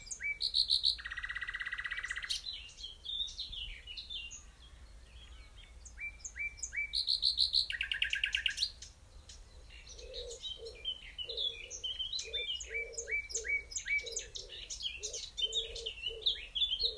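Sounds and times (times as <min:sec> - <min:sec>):
nightingale singing: 0:00.0 - 0:16.9.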